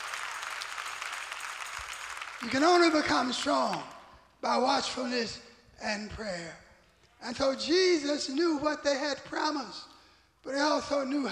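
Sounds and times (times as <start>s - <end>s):
audience clapping hands in praise: 0.0s - 4.1s
speech: 2.4s - 6.6s, 7.2s - 11.2s.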